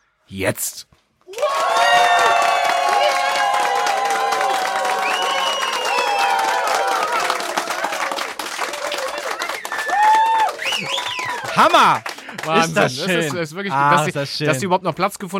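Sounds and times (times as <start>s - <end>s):
speech: 0.3s - 2.1s, 11.6s - 15.3s
cheers, excited shouts and whoops: 1.3s - 11.9s
large crowd applauding: 1.3s - 14.0s.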